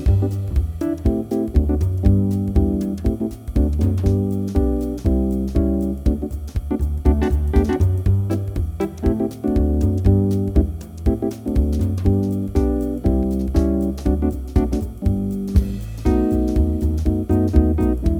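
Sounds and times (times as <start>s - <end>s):
rhythm changes in G: 0.0s - 18.1s.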